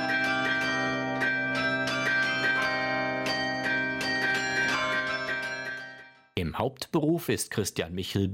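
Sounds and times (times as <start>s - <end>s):
carillon bells being played: 0.0s - 6.3s
speech: 6.4s - 8.3s.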